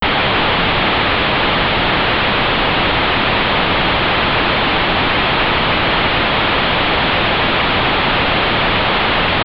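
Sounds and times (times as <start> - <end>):
static: 0.0 - 9.4.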